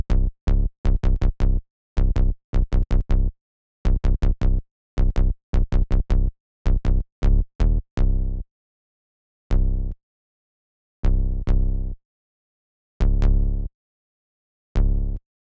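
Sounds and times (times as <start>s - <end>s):
bass: 0.0s - 8.5s, 9.5s - 10.0s, 11.0s - 12.0s, 13.0s - 13.8s, 14.7s - 15.2s.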